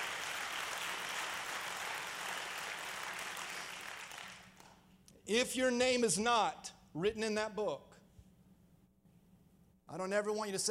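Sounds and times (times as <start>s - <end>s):
audience clapping: 0.0s - 4.9s
speech: 5.3s - 7.9s, 9.9s - 10.6s.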